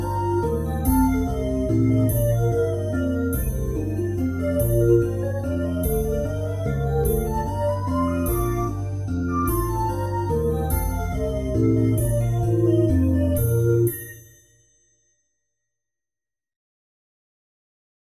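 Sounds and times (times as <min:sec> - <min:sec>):
fairground waltz music: 0:00.0 - 0:13.9.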